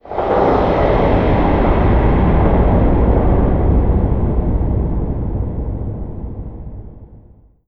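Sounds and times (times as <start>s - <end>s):
space base rumble: 0.0s - 7.5s.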